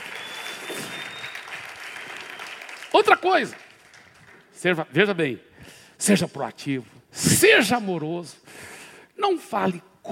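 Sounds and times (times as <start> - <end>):
audience applause: 0.0 - 4.6
speech: 2.9 - 3.6, 4.6 - 8.4, 9.2 - 10.0.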